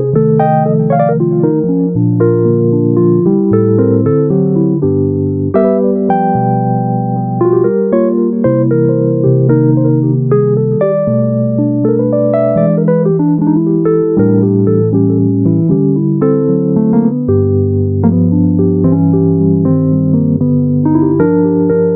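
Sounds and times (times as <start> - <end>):
bluesy chill Wurlitzer electric piano: 0.0 - 21.9.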